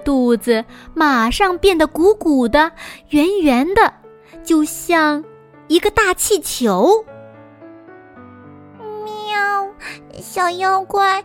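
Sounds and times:
speech: 0.0 - 7.1, 9.8 - 11.2
wild cat meowing: 8.8 - 9.8.

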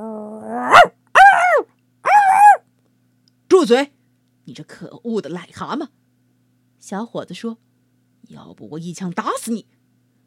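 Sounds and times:
small dog barking fiercely: 0.6 - 2.6
speech: 3.6 - 6.0, 6.8 - 9.8.

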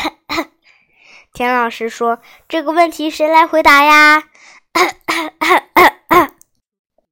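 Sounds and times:
speech: 1.4 - 5.7
loud throaty coughs: 4.8 - 6.4.

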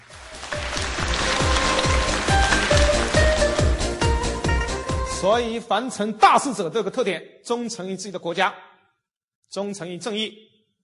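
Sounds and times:
audience applause: 0.0 - 4.0
speech: 5.2 - 8.7, 9.5 - 10.5.

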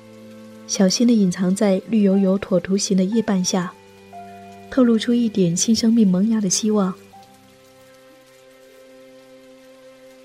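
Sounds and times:
light gentle rain falling: 0.0 - 10.2
speech: 0.7 - 3.8, 4.8 - 7.0.

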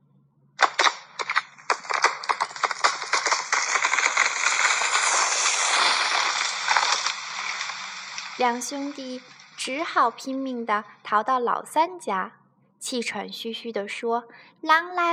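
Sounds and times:
wooden house crashing down: 0.6 - 9.2
speech: 8.4 - 15.1.

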